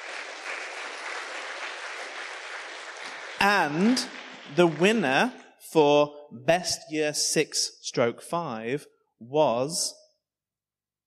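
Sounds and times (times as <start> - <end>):
audience applause: 0.0 - 5.3
speech: 3.4 - 10.0.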